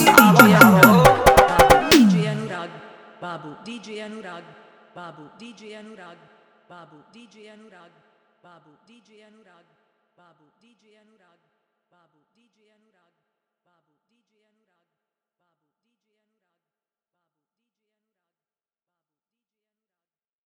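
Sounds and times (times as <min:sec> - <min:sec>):
hard dholak drum bass mix: 0:00.0 - 0:02.5.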